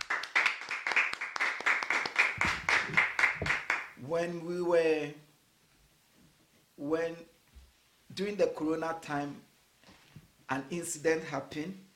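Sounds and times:
audience clapping: 0:00.0 - 0:04.0
speech: 0:04.0 - 0:05.3, 0:06.8 - 0:07.3, 0:08.2 - 0:09.5, 0:10.5 - 0:11.8.

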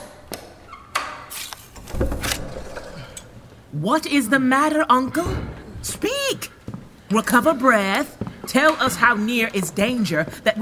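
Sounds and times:
wooden door being forced open: 0:01.8 - 0:02.9
speech: 0:03.7 - 0:05.5, 0:07.1 - 0:10.5.

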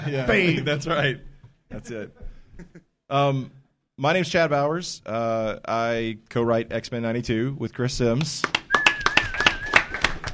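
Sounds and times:
speech: 0:00.0 - 0:08.6
sharp hand claps: 0:08.2 - 0:10.3.

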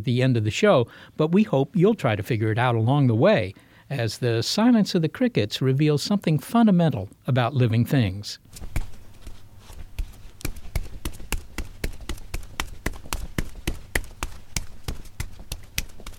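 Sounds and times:
speech: 0:00.0 - 0:08.8
footsteps of someone running along a street: 0:08.5 - 0:16.1.

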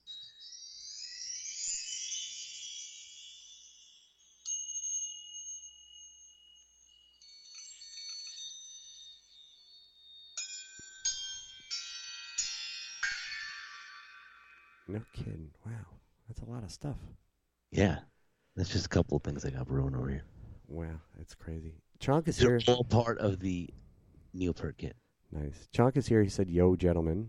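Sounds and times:
chime note sound effects: 0:00.0 - 0:15.0
speech: 0:14.9 - 0:23.8, 0:24.4 - 0:27.2.

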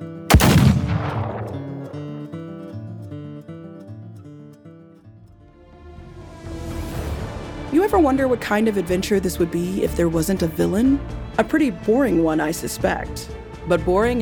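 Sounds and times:
gunshot fired into a dying man's chest: 0:00.3 - 0:02.2
speech: 0:07.8 - 0:14.1.

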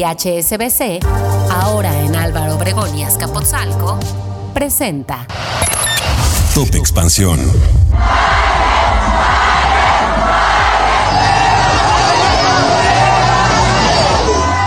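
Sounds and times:
speech: 0:00.0 - 0:05.8, 0:06.6 - 0:08.4
large crowd booing and shouting: 0:07.9 - 0:14.6.

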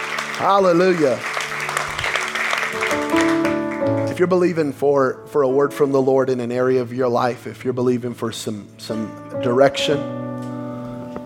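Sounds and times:
audience clapping hands: 0:00.0 - 0:04.5
speech: 0:00.4 - 0:01.3, 0:02.7 - 0:03.3, 0:04.2 - 0:10.2.

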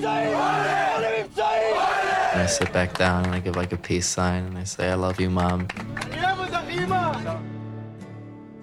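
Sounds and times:
speech: 0:00.0 - 0:00.7, 0:02.4 - 0:07.4
rowdy group singing and cheering on a bus: 0:00.0 - 0:02.7.

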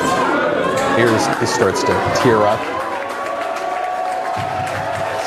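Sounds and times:
large crowd cheering and applauding: 0:00.2 - 0:05.2
speech: 0:01.6 - 0:02.8.

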